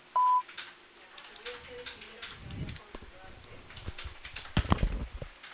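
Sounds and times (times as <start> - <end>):
voicemail recording tone beep: 0.1 - 0.5
faint knocks and rustling: 1.5 - 5.4.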